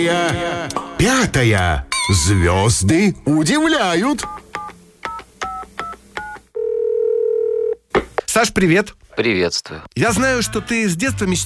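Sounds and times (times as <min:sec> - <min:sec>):
speech: 0:00.0 - 0:04.4, 0:08.4 - 0:11.4
telephone keypad tones of a number being dialed: 0:04.2 - 0:07.8.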